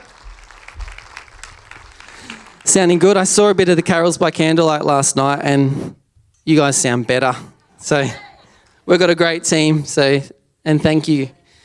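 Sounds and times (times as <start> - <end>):
crowd applauding the band: 0.0 - 4.0
speech: 2.7 - 11.4.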